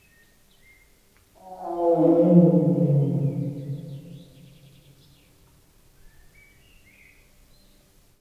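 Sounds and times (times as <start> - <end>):
distant animal roaring in a tiger house: 1.4 - 4.3.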